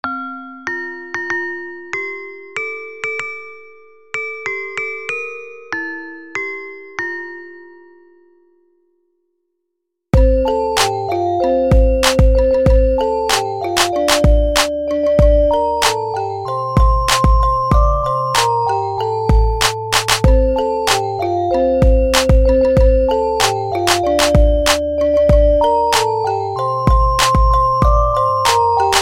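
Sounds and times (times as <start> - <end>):
christmas beat: 10.2 - 29.0.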